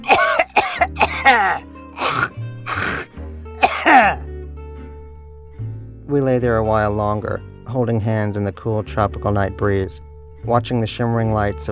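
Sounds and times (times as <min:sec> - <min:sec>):
old man coughing up phlegm: 0:00.0 - 0:04.3
speech: 0:06.2 - 0:11.7.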